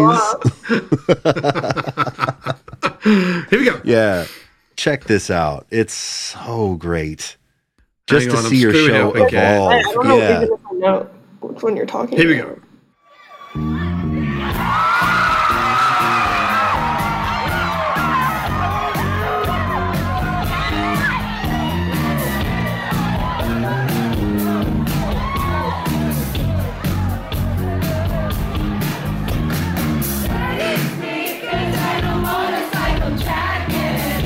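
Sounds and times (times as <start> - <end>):
speech: 0.0 - 7.4, 8.1 - 12.6, 13.5 - 13.9
laughter: 0.2 - 3.5, 8.4 - 10.6
crowd cheering at a bass break during a live DJ show: 13.2 - 30.8
pounding bass-heavy music: 13.6 - 30.8, 31.6 - 34.2.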